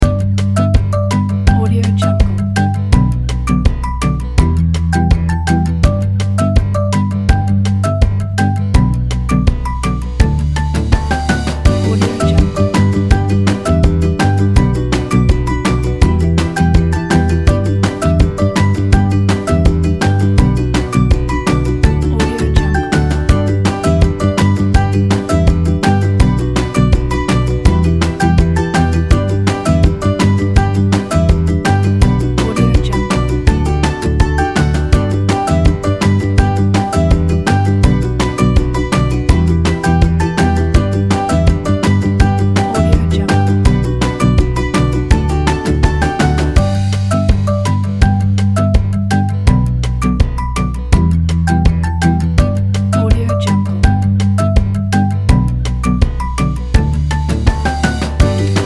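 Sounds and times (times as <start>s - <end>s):
funny music: 0.0s - 58.6s.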